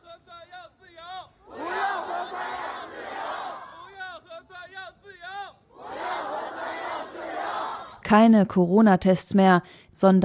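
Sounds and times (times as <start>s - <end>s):
protest crowd shouting: 1.4s - 4.3s, 5.2s - 8.0s
speech: 8.1s - 10.2s.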